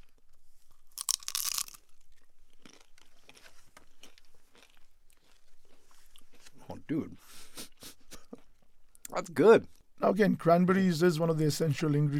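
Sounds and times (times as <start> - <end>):
biting into a crispy fried samosa with phyllo-style wrapper tied with scallion: 0.0 - 6.5
chewing crackles of crispy fried samosa: 0.0 - 6.6
speech: 6.7 - 7.7, 9.2 - 12.1.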